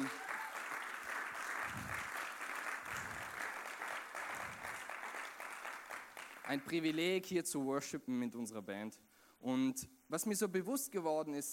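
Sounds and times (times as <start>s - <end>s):
audience applause for the band: 0.0s - 6.7s
speech: 6.5s - 11.5s.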